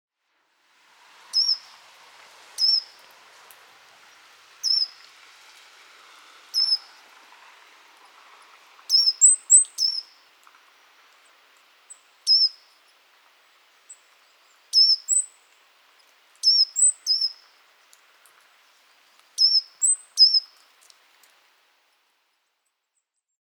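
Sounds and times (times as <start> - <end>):
background hiss: 0.2 - 22.6
Eurasian blue tit calling: 1.4 - 1.7, 2.6 - 2.9, 4.6 - 5.1, 6.5 - 6.9, 8.8 - 11.0, 11.9 - 12.8, 13.9 - 15.5, 16.4 - 17.6, 19.4 - 20.6.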